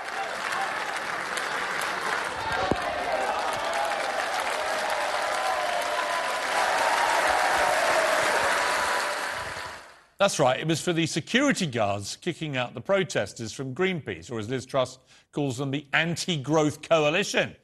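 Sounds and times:
crowd cheering: 0.0s - 10.1s
speech: 10.2s - 17.6s.

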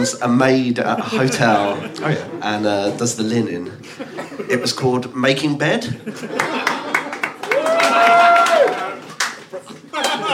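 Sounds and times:
speech: 0.0s - 6.7s
laughter: 0.9s - 3.0s, 3.8s - 4.7s, 5.9s - 10.3s
one man applauding sarcastically: 6.6s - 10.3s.

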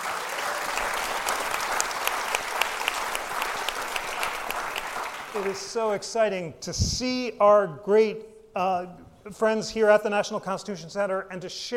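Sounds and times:
live audience round of applause: 0.0s - 5.8s
speech: 5.4s - 11.7s.

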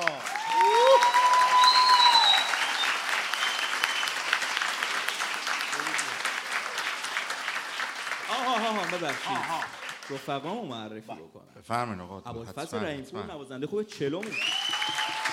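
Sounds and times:
audience clapping for musicians at a concert: 0.0s - 10.7s, 14.2s - 15.3s
whistles: 0.6s - 4.4s, 14.3s - 15.3s
speech: 9.0s - 14.7s.

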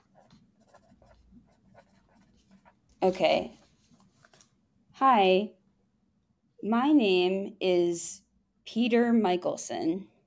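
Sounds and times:
pen scratching on paper: 0.0s - 3.2s
speech: 3.0s - 3.6s, 5.0s - 5.6s, 6.6s - 10.1s.

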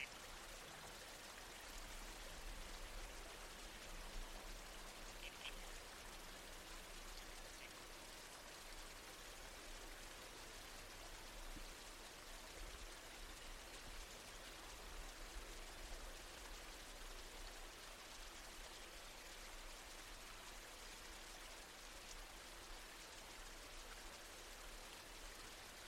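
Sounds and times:
trees swaying in the wind: 0.0s - 16.2s
babbling creek: 0.0s - 25.8s.

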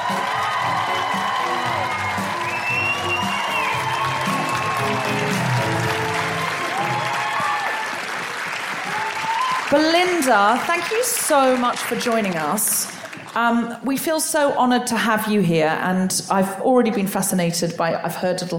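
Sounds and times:
whoops and cheers: 0.0s - 9.8s
live audience in Canberra clapping: 0.0s - 13.6s
speech: 9.7s - 18.5s.

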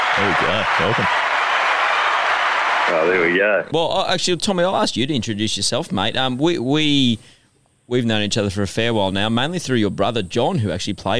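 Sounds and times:
applause sound effect from a button: 0.0s - 3.3s
speech: 0.2s - 1.2s, 2.9s - 11.1s.

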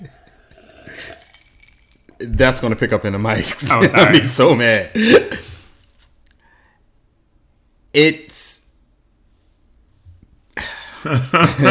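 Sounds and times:
breathy swallow: 0.0s - 2.2s
person sipping a drink: 0.0s - 2.2s
glass clinking: 0.3s - 2.2s
speech: 2.2s - 5.4s, 8.0s - 8.4s, 11.0s - 11.7s
laughter: 11.0s - 11.7s.

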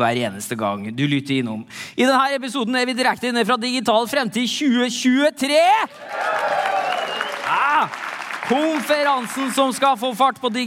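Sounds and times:
speech: 0.0s - 6.7s, 7.5s - 10.6s
conference audience clapping: 5.9s - 10.6s
brief rising cheer: 6.0s - 8.6s.

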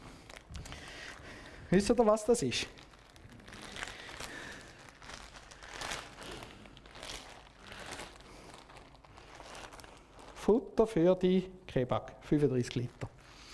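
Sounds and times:
plastic garbage bag crinkling: 0.0s - 10.8s
speech: 1.7s - 2.8s, 10.5s - 13.2s.

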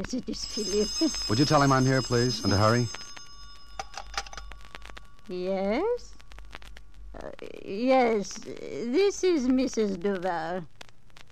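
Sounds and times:
speech: 0.0s - 3.0s, 5.3s - 6.1s, 7.2s - 10.8s
telephone ringing: 0.3s - 5.0s.

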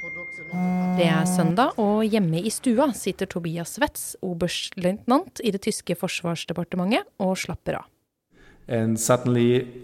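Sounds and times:
mobile phone news alert notifications: 0.5s - 1.6s
speech: 1.0s - 7.9s, 8.7s - 9.8s.

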